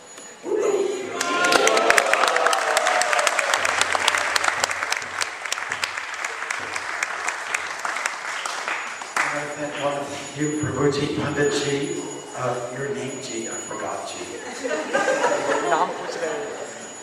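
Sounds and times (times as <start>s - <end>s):
audience applause for a speaker at a lecture: 1.1s - 9.6s
speech: 10.4s - 16.6s
laughter: 14.3s - 17.0s.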